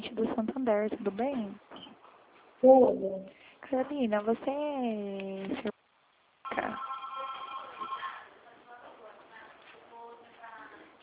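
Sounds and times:
speech: 0:00.4 - 0:01.6, 0:02.6 - 0:05.7
telephone ringing over a narrow phone line: 0:06.5 - 0:08.4.

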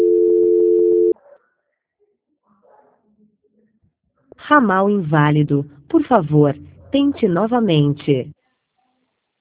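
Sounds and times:
telephone tone during a call transfer: 0:00.0 - 0:01.2
speech: 0:04.5 - 0:08.4.

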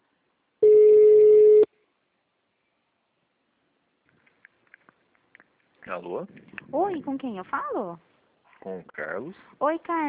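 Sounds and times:
telephone ringback tone while waiting for an answer: 0:00.6 - 0:01.7
speech: 0:05.9 - 0:10.0.

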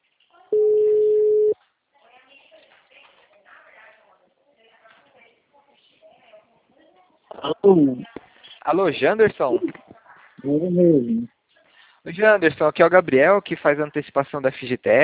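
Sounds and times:
telephone busy tone after a dropped call: 0:00.5 - 0:01.6
speech: 0:07.6 - 0:09.8, 0:10.4 - 0:11.3, 0:12.0 - 0:15.0.

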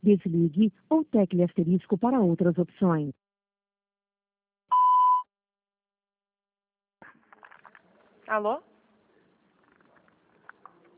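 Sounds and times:
speech: 0:00.0 - 0:03.3, 0:08.3 - 0:08.7
voicemail beep after a recorded message: 0:04.7 - 0:05.2.

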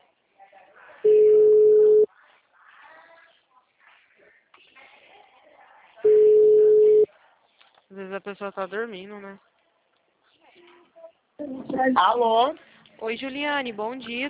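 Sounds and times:
telephone ringback tone while a call connects: 0:01.1 - 0:02.1, 0:06.1 - 0:07.1
speech: 0:08.2 - 0:09.5, 0:11.4 - 0:14.2.

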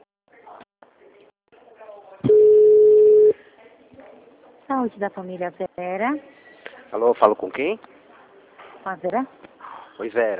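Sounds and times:
ringback tone while a call is placed to a family-health association: 0:02.3 - 0:03.4
speech: 0:04.8 - 0:08.0, 0:08.8 - 0:09.4, 0:10.0 - 0:10.3.

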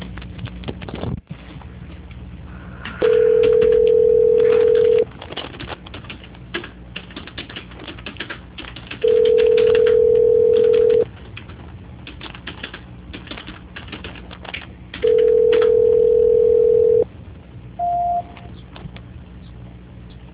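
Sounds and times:
telephone line tones while a call is being transferred: 0:03.0 - 0:05.1, 0:09.0 - 0:11.0, 0:15.0 - 0:17.1, 0:17.8 - 0:18.5
keyboard typing clatter: 0:03.0 - 0:17.0.

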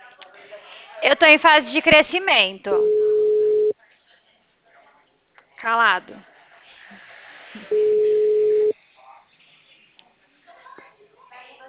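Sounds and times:
speech: 0:01.0 - 0:03.0, 0:05.6 - 0:06.3
telephone busy signal: 0:02.8 - 0:03.7, 0:07.7 - 0:08.7.

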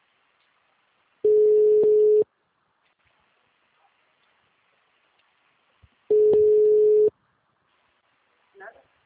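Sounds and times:
ringback tone on an outgoing phone call: 0:01.3 - 0:02.2, 0:06.1 - 0:07.1.

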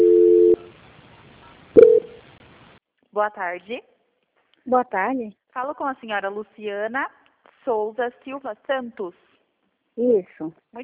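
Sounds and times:
telephone call-transfer tones on a Banco Santander customer call: 0:00.0 - 0:00.7
speech: 0:03.2 - 0:04.0, 0:04.7 - 0:09.2, 0:10.0 - 0:10.8.

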